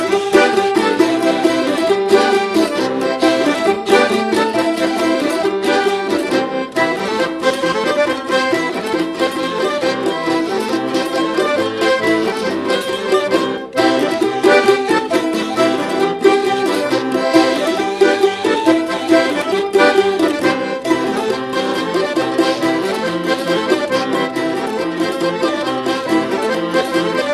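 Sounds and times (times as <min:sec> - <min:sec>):
Bashkir folk tunes: 0:00.0 - 0:27.3.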